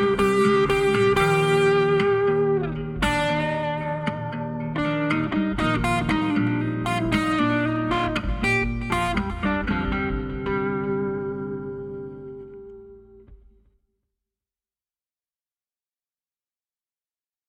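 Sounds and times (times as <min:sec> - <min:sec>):
groove music: 0:00.0 - 0:13.6.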